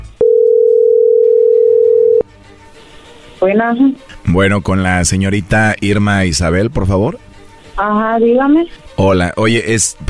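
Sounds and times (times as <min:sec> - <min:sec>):
telephone dialing tone: 0:00.2 - 0:02.2
speech: 0:03.4 - 0:07.2, 0:07.8 - 0:10.0.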